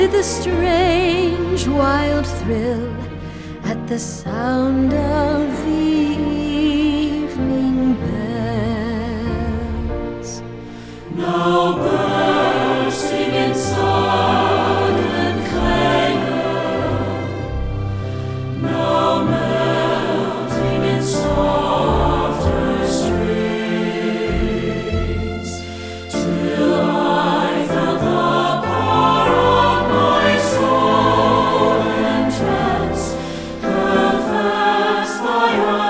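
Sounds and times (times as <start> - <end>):
choir singing: 0.0 - 35.8.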